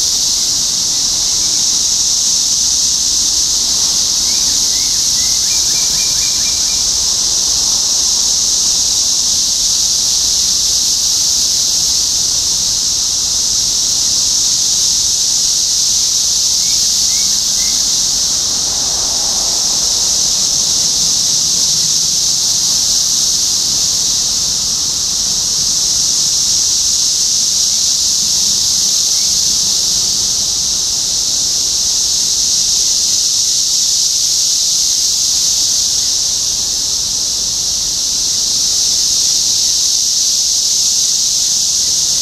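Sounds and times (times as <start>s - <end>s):
cicadas droning: 0.0s - 42.1s.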